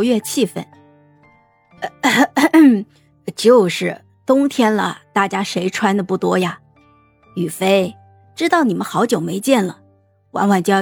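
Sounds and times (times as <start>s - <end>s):
speech: 0.0s - 0.8s, 1.8s - 6.6s, 7.4s - 10.8s
person performing a dry cough at a dinner table: 1.8s - 2.7s.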